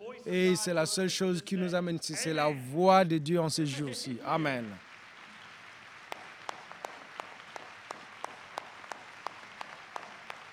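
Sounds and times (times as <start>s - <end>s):
speech: 0.2s - 4.9s
congregation applauding at a church service: 3.6s - 10.5s
sharp claps: 4.5s - 10.5s.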